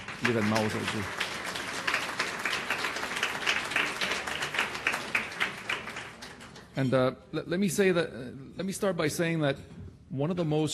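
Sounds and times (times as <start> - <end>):
audience applause: 0.0 - 6.7
speech: 0.2 - 1.2, 6.8 - 10.7.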